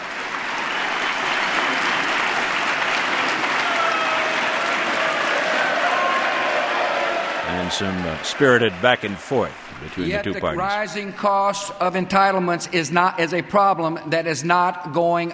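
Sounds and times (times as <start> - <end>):
Democrats cheering in chamber: 0.0 - 11.2
speech: 7.7 - 15.3.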